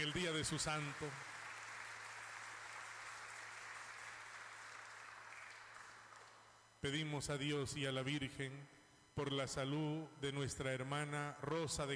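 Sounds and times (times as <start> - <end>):
speech: 0.0 - 1.4, 6.8 - 11.9
audience applauding: 0.0 - 6.5.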